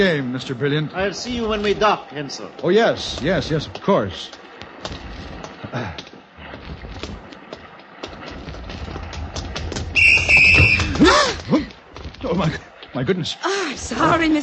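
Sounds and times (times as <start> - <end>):
speech: 0.0 - 5.0, 5.7 - 6.1, 12.2 - 14.4
whistle being blown: 10.0 - 11.0.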